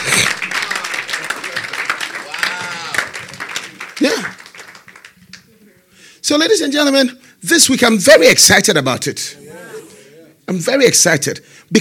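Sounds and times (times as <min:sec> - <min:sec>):
audience clapping: 0:00.0 - 0:05.6
speech: 0:06.3 - 0:09.4, 0:10.5 - 0:11.7.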